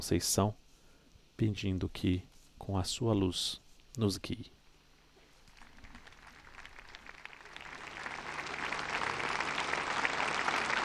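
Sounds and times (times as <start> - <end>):
speech: 0.0 - 0.6, 1.4 - 4.6
applause of the faithful after speech: 5.5 - 10.8.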